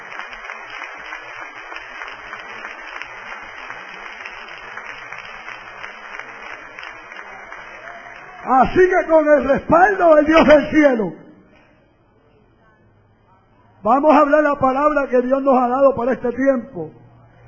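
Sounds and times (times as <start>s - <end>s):
audience applauding: 0.0s - 9.5s
speech: 8.5s - 11.2s, 13.8s - 17.0s.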